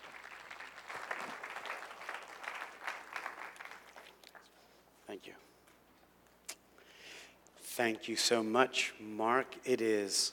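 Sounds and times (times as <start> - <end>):
church audience applause: 0.0 - 4.4
speech: 5.2 - 5.4, 7.8 - 10.3.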